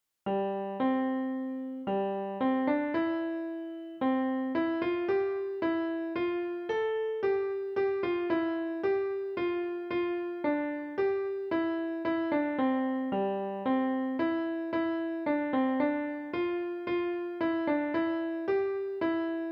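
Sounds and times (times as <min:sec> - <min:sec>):
piano: 0:00.3 - 0:19.5.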